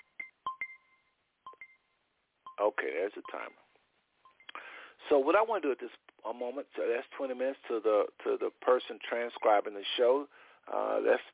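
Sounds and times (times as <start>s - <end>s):
electronic timer beeping: 0.0s - 3.6s, 4.3s - 4.6s
speech: 2.6s - 3.7s, 5.1s - 11.3s.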